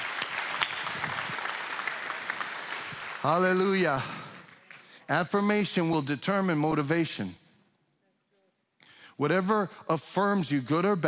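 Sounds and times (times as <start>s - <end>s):
audience applause: 0.0s - 4.9s
speech: 3.2s - 4.2s, 5.1s - 7.4s, 9.2s - 11.0s.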